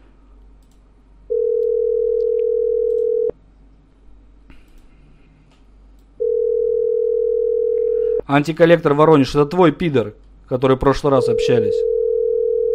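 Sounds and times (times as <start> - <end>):
telephone dial tone: 1.3 - 3.3, 6.2 - 8.2, 11.8 - 12.7
speech: 8.3 - 11.9.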